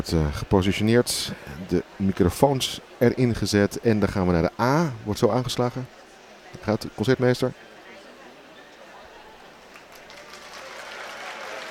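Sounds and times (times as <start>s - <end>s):
speech: 0.0s - 6.0s, 6.6s - 7.6s
concert audience applause: 9.6s - 11.7s.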